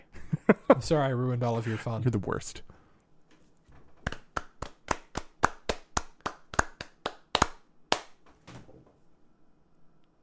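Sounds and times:
speech: 0:00.7 - 0:02.7
two men clapping hands in rhythm: 0:04.0 - 0:08.2.

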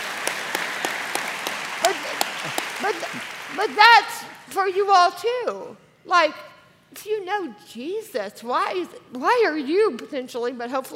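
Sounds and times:
audience clapping: 0:00.0 - 0:04.5
speech: 0:02.9 - 0:10.9.

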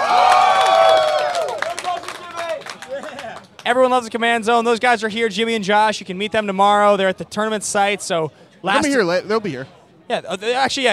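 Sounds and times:
crowd cheering and whooping: 0:00.0 - 0:03.6
clapping: 0:00.2 - 0:03.8
speech: 0:03.7 - 0:10.9.

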